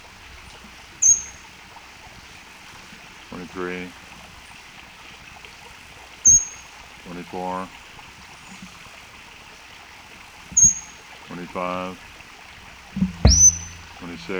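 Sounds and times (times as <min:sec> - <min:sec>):
faint watery hiss: 0:00.0 - 0:14.3
sharp, high-pitched bird calls: 0:01.0 - 0:01.5, 0:06.2 - 0:06.8, 0:10.6 - 0:11.4, 0:13.1 - 0:14.3
speech: 0:03.4 - 0:04.0, 0:07.1 - 0:07.8, 0:11.3 - 0:12.1, 0:14.1 - 0:14.3.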